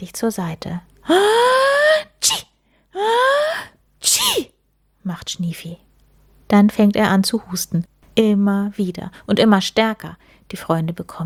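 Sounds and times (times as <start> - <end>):
speech: 0.0 - 1.6, 2.2 - 2.4, 5.1 - 5.9, 6.5 - 11.2
person sneezing: 1.1 - 4.5.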